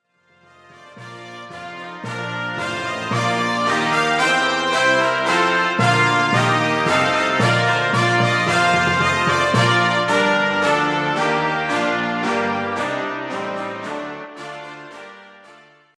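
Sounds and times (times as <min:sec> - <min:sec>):
brass instruments: 0:00.2 - 0:15.9.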